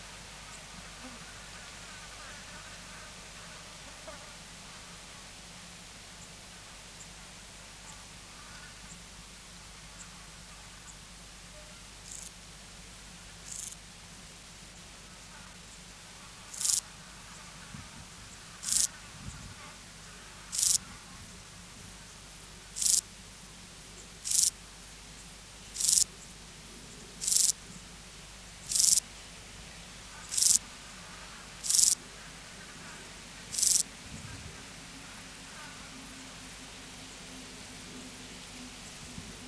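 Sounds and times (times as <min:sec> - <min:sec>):
steady background hiss: 0:00.0 - 0:39.4
Euchorthippus declivus grasshopper buzzy chirps: 0:12.0 - 0:12.4, 0:13.4 - 0:13.8, 0:16.2 - 0:17.6, 0:18.3 - 0:19.6, 0:20.4 - 0:27.8, 0:28.6 - 0:29.1, 0:30.1 - 0:32.0, 0:32.9 - 0:34.3, 0:35.0 - 0:39.4.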